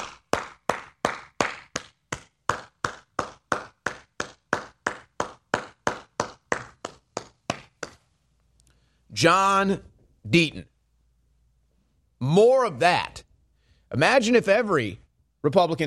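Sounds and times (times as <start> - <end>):
applause: 0.0 - 6.9
speech: 9.2 - 10.7, 12.2 - 13.3, 13.9 - 15.8.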